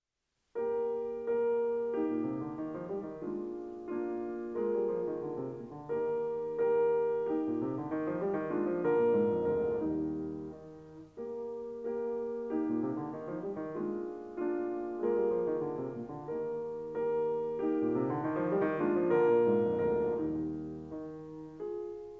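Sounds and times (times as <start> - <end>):
piano sonata in E flat major: 0.5 - 22.1.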